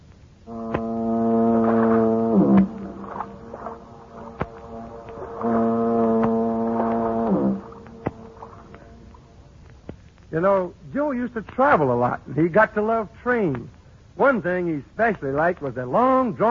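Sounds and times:
foghorns booming across a bay: 0.5s - 9.4s
speech: 10.4s - 16.4s.

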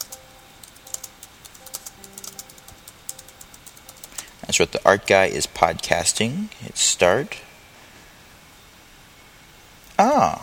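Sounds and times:
typing a phrase on a computer keyboard: 0.0s - 4.8s
speech: 4.5s - 7.5s, 10.0s - 10.4s.

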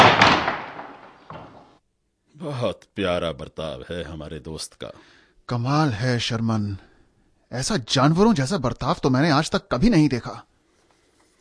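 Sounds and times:
heavy door slamming shut: 0.0s - 1.8s
speech: 2.4s - 6.9s, 7.5s - 10.5s.

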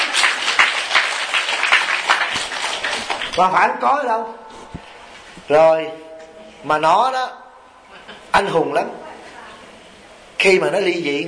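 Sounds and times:
crowd applause: 0.0s - 3.5s
speech: 3.4s - 4.4s, 5.5s - 7.4s, 8.4s - 9.0s, 10.4s - 11.2s.

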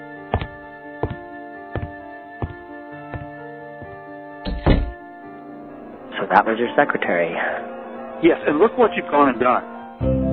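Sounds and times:
sustained tonal background: 0.0s - 10.1s
soft evenly spaced thumps: 0.3s - 1.2s, 1.8s - 5.0s
door closing with a heavy thud: 4.5s - 5.0s
speech: 6.3s - 10.2s.

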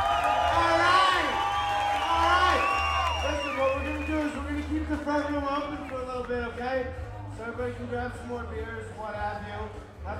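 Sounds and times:
audience applause and cheering: 0.0s - 6.6s
speech: 6.8s - 10.1s.

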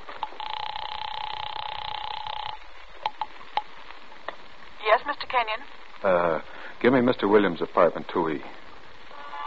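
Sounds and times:
house phone ringing: 0.2s - 3.7s
speech: 5.0s - 8.6s.

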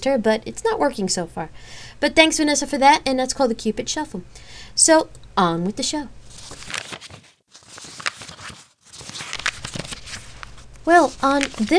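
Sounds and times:
speech: 0.0s - 6.8s, 10.9s - 11.7s
book pages turning: 6.3s - 11.7s.

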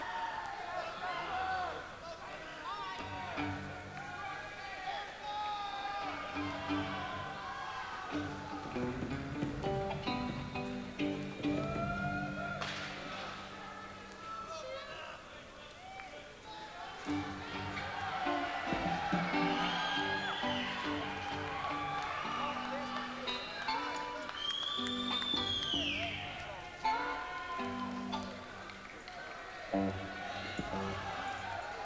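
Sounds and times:
crowd: 0.0s - 31.8s.

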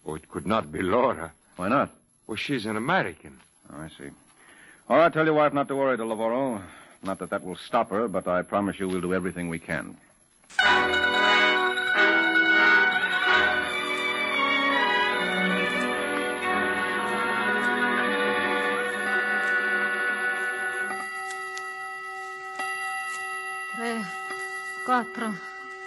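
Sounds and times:
speech: 0.2s - 4.2s, 4.9s - 11.1s, 24.9s - 25.5s
clock chiming the hour: 10.6s - 25.8s.

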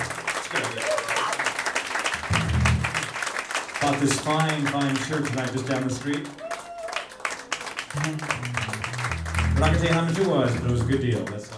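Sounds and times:
low voice cheering: 0.0s - 1.5s, 6.2s - 11.2s
audience applause: 0.0s - 11.5s
speech: 3.8s - 6.4s, 8.0s - 8.9s, 9.6s - 11.5s.

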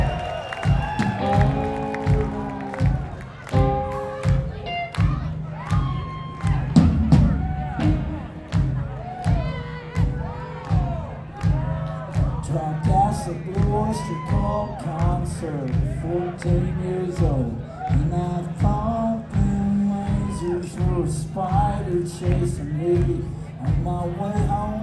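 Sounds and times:
people shouting over the crowd: 0.0s - 12.1s
audience applauding and cheering to welcome a band's drummer at a live show: 0.0s - 24.8s.

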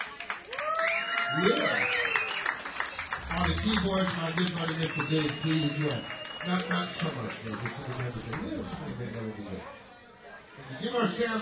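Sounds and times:
crowd applause for the band: 0.0s - 9.6s
whoops and cheers: 0.5s - 7.2s
speech: 1.3s - 2.0s, 3.5s - 9.8s, 10.6s - 11.4s.

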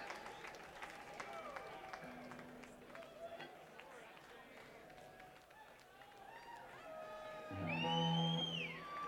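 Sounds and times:
instrument tuning: 7.2s - 9.0s.

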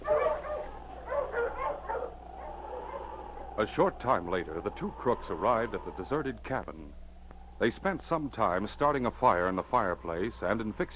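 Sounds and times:
huskies barking and whimpering: 0.0s - 3.9s
speech: 3.6s - 7.0s, 7.6s - 10.9s.

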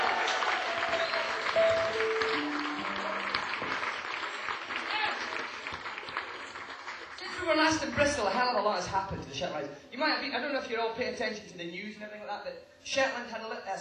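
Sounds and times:
audience applause: 0.0s - 7.9s
speech: 7.5s - 13.7s.

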